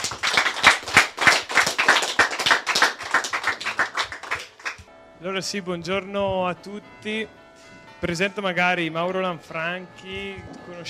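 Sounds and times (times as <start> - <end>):
audience applause: 0.0 - 4.8
speech: 5.2 - 7.4, 8.0 - 10.8.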